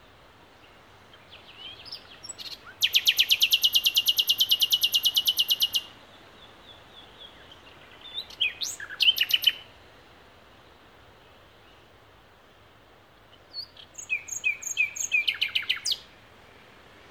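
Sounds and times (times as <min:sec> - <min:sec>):
Common nightingale Luscinia megarhynchos singing: 0:00.6 - 0:09.8, 0:13.1 - 0:16.8.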